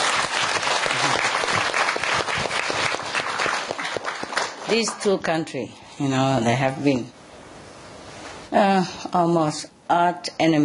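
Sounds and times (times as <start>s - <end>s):
enthusiastic audience applause: 0.0s - 5.1s
speech: 4.7s - 7.2s, 8.5s - 10.6s.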